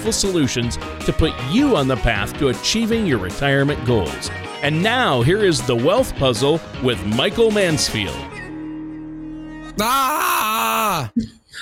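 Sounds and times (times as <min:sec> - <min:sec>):
speech: 0:00.0 - 0:08.3, 0:09.8 - 0:11.6
person screaming: 0:09.8 - 0:11.2.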